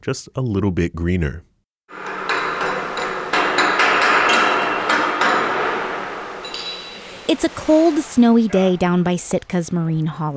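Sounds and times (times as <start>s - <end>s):
speech: 0.0s - 1.5s, 7.3s - 10.3s
hammer strikes in a boat workshop: 1.9s - 8.6s.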